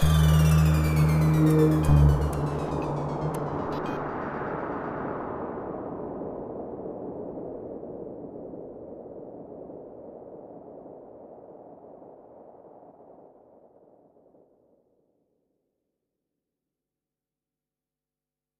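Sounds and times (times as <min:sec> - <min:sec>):
comedy German synth music: 0:00.0 - 0:04.0.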